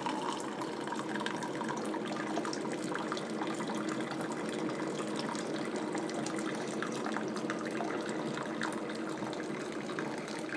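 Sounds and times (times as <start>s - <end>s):
vinegar running through an Elite coffee maker into a cup: 0.0s - 10.5s.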